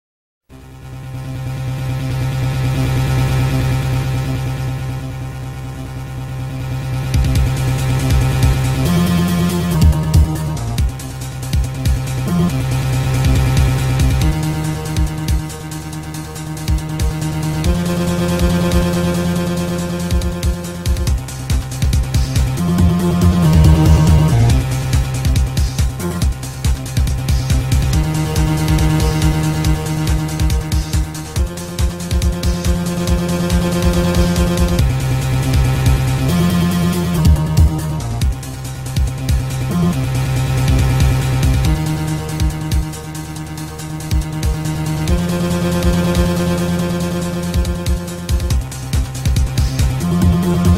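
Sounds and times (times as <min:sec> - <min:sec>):
suspense music: 0:00.5 - 0:50.7.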